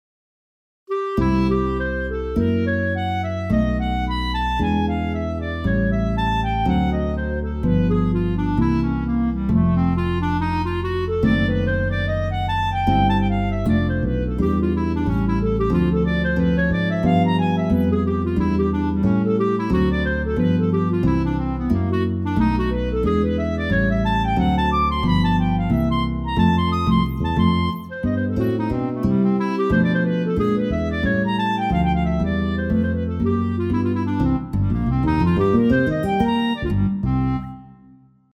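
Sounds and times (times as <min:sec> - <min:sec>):
clarinet playing: 0:00.9 - 0:38.0.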